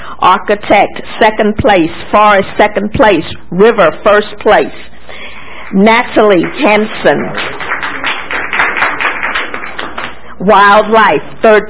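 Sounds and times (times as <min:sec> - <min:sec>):
speech: 0:00.3 - 0:04.9, 0:05.7 - 0:07.5, 0:10.4 - 0:11.6
audience clapping for youth award winners at a ceremony: 0:06.3 - 0:10.4.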